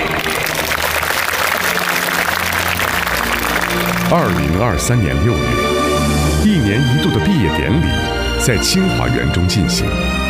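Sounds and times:
audience applause: 0:00.0 - 0:06.4
speech: 0:04.1 - 0:10.1.

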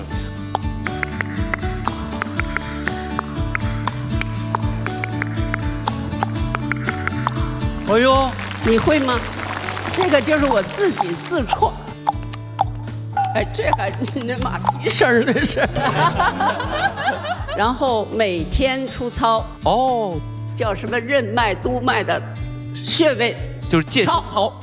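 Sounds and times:
music: 0:00.0 - 0:24.6
tongue clicks by an old man imitating horse hoofbeats: 0:00.4 - 0:07.5, 0:11.0 - 0:15.1
people talking: 0:09.9 - 0:11.8, 0:13.2 - 0:16.3, 0:17.6 - 0:18.9
laughter: 0:14.0 - 0:17.8.

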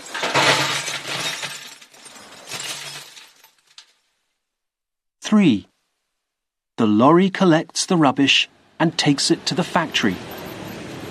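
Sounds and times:
glass bottles crashing into a recycling container: 0:00.0 - 0:04.0
speech: 0:05.3 - 0:05.7, 0:06.8 - 0:10.4.

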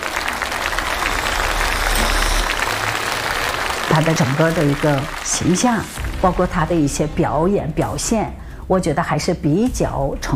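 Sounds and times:
audience applause: 0:00.0 - 0:06.9
speech: 0:04.0 - 0:10.3.

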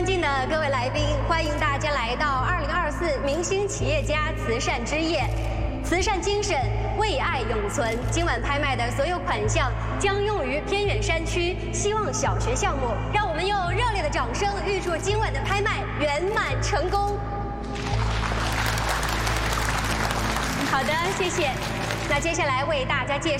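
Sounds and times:
speech: 0:00.1 - 0:17.3, 0:20.8 - 0:23.3
audience applause at charity gala: 0:17.7 - 0:22.4.

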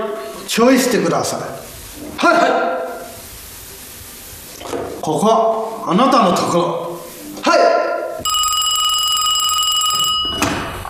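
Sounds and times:
speech: 0:00.5 - 0:02.8, 0:05.0 - 0:06.8
telephone ringing with a high bell-like trill: 0:08.2 - 0:10.8.

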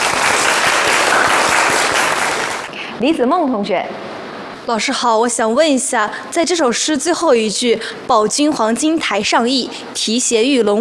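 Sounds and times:
classroom applause: 0:00.0 - 0:02.8
speech: 0:03.0 - 0:04.0, 0:04.7 - 0:10.8.

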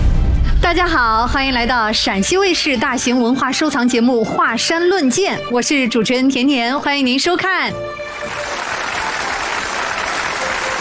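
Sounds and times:
speech: 0:00.7 - 0:08.4
studio audience applause: 0:08.0 - 0:10.7.

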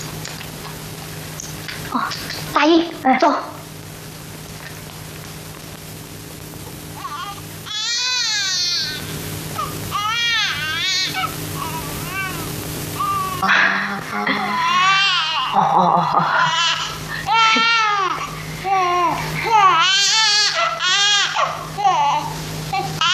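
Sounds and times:
speech: 0:01.9 - 0:03.6
newborn baby crying: 0:07.0 - 0:13.4, 0:14.3 - 0:15.6, 0:16.5 - 0:23.1
laughter: 0:13.4 - 0:19.8.

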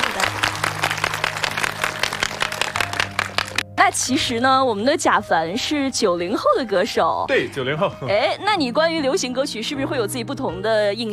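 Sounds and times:
audience applause: 0:00.0 - 0:03.6
speech: 0:03.9 - 0:11.1.

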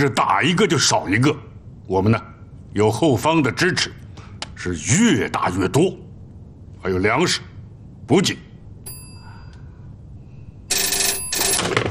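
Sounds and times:
speech: 0:00.0 - 0:04.0, 0:04.6 - 0:06.0, 0:06.8 - 0:07.5, 0:08.1 - 0:08.4
telephone ringing: 0:10.7 - 0:11.9.

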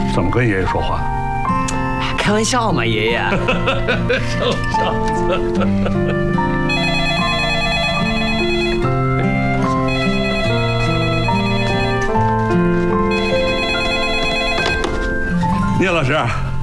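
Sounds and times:
speech: 0:00.2 - 0:01.6, 0:02.3 - 0:06.6, 0:15.8 - 0:16.4
laughter: 0:03.3 - 0:06.5
telephone ringing with a melodic ringtone: 0:06.5 - 0:12.3, 0:13.0 - 0:15.3.

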